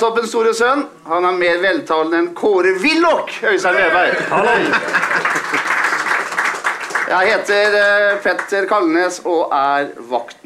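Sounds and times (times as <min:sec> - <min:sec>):
speech: 0:00.0 - 0:05.7, 0:07.1 - 0:10.4
laughter: 0:03.6 - 0:06.5
audience applause: 0:04.2 - 0:08.6.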